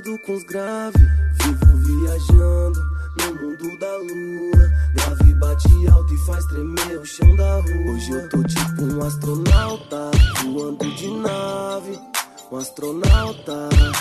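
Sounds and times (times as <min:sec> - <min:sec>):
bass: 0:01.0 - 0:03.4, 0:04.6 - 0:09.5.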